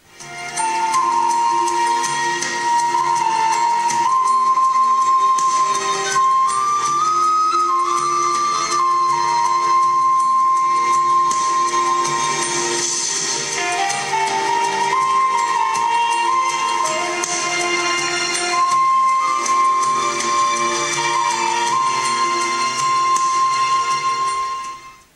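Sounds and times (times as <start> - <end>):
ringtone: 0.2 - 25.0.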